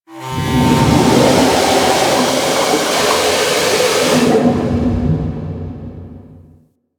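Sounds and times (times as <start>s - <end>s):
large ocean ship steam whistle blast: 0.1s - 4.7s.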